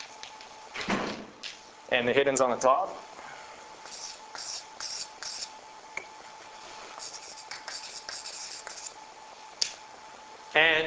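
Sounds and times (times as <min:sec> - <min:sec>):
speech: 0:01.9 - 0:03.1, 0:10.6 - 0:10.8
diagram being drawn on a board: 0:03.8 - 0:05.5, 0:07.0 - 0:09.0.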